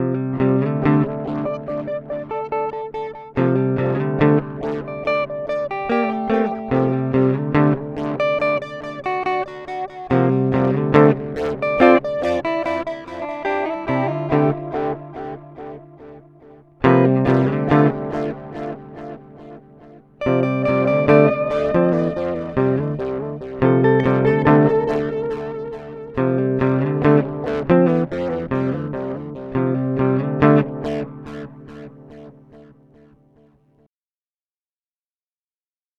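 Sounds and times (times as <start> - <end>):
guitar through Amplitube X-Time Analog: 0.0 - 33.1.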